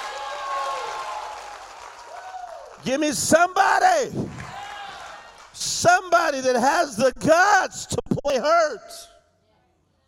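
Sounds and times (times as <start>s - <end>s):
audience clapping: 0.0s - 3.5s, 4.1s - 6.1s
speech: 2.8s - 4.6s, 5.6s - 9.1s.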